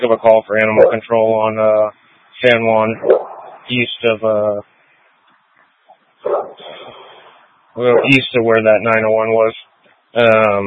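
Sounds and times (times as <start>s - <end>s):
speech: 0.0s - 4.7s, 6.2s - 7.0s, 7.8s - 10.6s
dog barking outside a motorhome: 0.8s - 1.0s, 3.0s - 3.6s, 6.2s - 7.0s, 7.9s - 8.2s.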